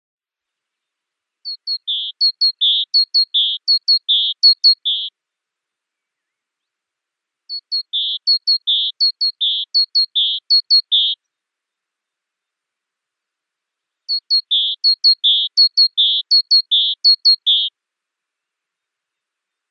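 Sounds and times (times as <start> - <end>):
great tit calling: 1.5 - 5.1, 7.5 - 11.2, 14.1 - 17.7.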